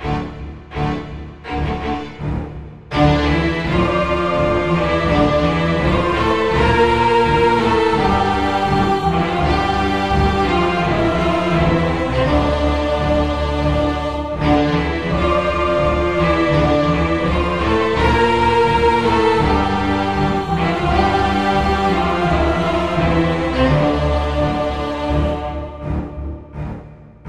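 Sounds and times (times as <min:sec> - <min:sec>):
choir singing: 0:00.0 - 0:27.2
strings: 0:00.0 - 0:27.2.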